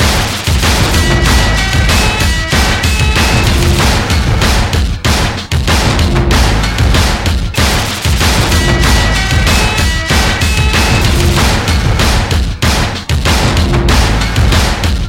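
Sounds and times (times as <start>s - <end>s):
music: 0.0s - 15.0s.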